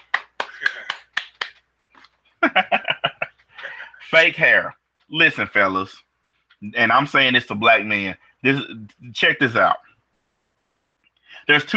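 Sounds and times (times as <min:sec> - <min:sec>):
one person clapping hands: 0:00.0 - 0:02.1
laughter: 0:02.4 - 0:03.9
speech: 0:04.1 - 0:09.9, 0:11.3 - 0:11.7.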